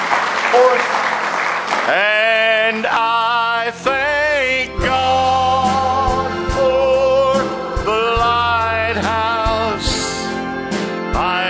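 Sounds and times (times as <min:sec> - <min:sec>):
congregation clapping in praise during a worship service: 0:00.0 - 0:03.2
speech: 0:00.6 - 0:01.0, 0:01.9 - 0:03.9
tonal vocal sound: 0:01.9 - 0:11.4.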